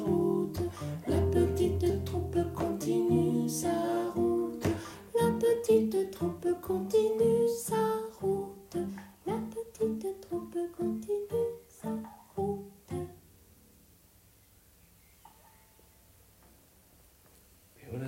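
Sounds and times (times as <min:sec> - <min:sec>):
person singing: 0:00.0 - 0:13.2
guitar: 0:00.0 - 0:13.4.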